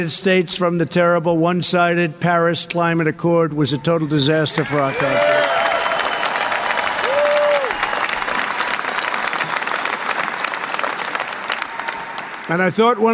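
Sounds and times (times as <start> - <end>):
speech: 0.0 - 5.6, 12.5 - 13.1
crowd applauding: 4.6 - 13.1.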